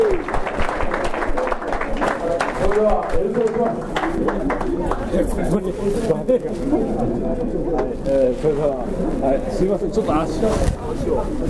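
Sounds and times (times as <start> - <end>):
audience clapping hands: 0.0 - 5.4
speech: 2.8 - 11.4.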